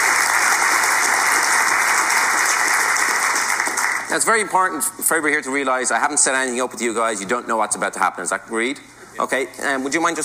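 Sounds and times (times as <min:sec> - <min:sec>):
audience applause: 0:00.0 - 0:04.1
speech: 0:04.1 - 0:10.2.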